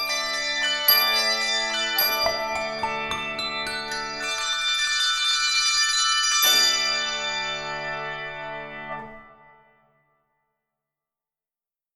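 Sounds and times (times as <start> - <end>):
3-5 octave handbells ringing: 0.0 - 9.3.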